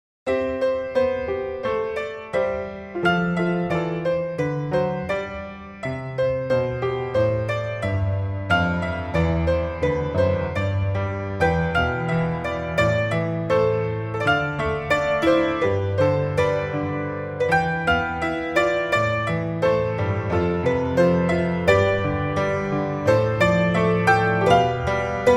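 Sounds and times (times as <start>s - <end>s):
solo piano: 0.2s - 25.3s.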